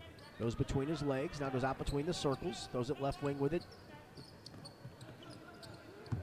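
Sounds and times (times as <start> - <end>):
speech: 0.4 - 4.3
basketball dribbled on the court during a high school game: 4.4 - 6.2.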